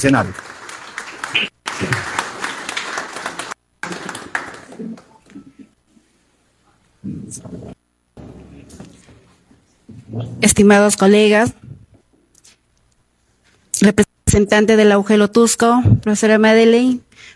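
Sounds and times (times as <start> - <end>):
speech: 0.0 - 0.5, 10.6 - 11.6, 13.8 - 17.3
audience applause: 0.0 - 5.3.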